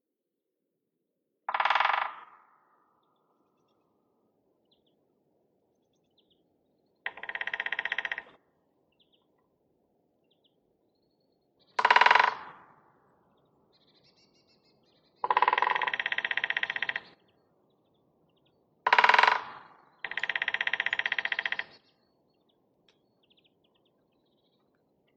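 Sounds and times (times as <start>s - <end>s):
woodpecker: 1.5s - 3.8s, 7.0s - 9.5s, 11.6s - 25.1s.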